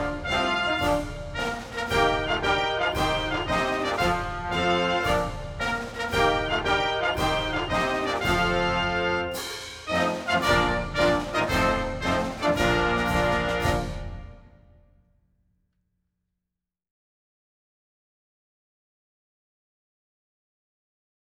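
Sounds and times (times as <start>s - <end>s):
national anthem music: 0.0s - 14.9s.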